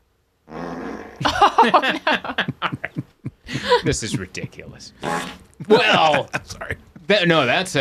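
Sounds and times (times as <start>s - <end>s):
fart: 0.5s - 1.2s
speech: 1.2s - 2.6s, 3.5s - 7.8s
laughter: 1.2s - 4.9s, 5.6s - 7.1s.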